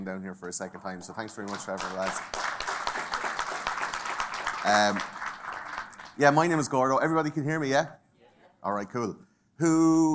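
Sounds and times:
speech: 0:00.0 - 0:02.7, 0:04.6 - 0:05.2, 0:06.2 - 0:08.0, 0:08.6 - 0:10.1
audience applause: 0:00.8 - 0:06.6.

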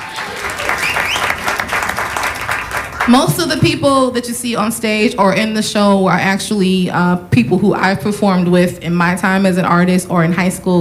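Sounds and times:
audience clapping: 0:00.0 - 0:03.7
speech: 0:03.1 - 0:10.7.

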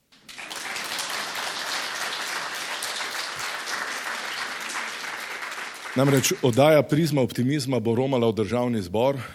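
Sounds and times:
audience applause: 0:00.1 - 0:06.9
speech: 0:06.0 - 0:09.3.

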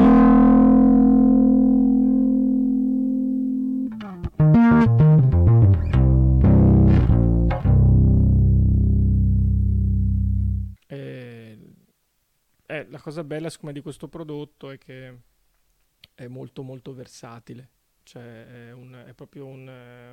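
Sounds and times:
guitar through preamp overdrive distortion: 0:00.0 - 0:10.8
speech: 0:13.0 - 0:15.3, 0:16.2 - 0:20.1.

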